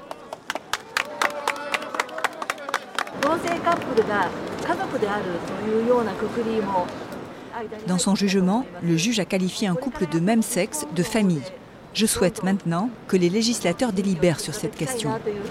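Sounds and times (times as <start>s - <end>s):
supporters applauding outside a Tokyo courthouse: 0.0s - 4.1s
speech: 3.1s - 7.0s, 7.6s - 15.4s.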